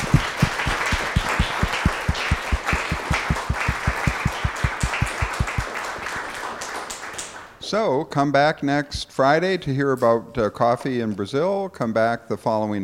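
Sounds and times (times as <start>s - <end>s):
audience applause: 0.0s - 7.4s
speech: 7.7s - 12.8s.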